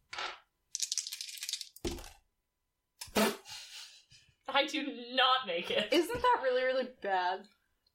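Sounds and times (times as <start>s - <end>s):
dice clattering and tumbling across a hard surface: 0.1s - 2.2s
speech: 4.6s - 7.6s.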